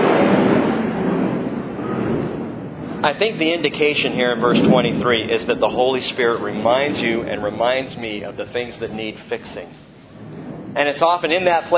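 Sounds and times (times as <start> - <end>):
airplane flying overhead: 0.0 - 11.7
speech: 3.0 - 9.9, 10.8 - 11.7.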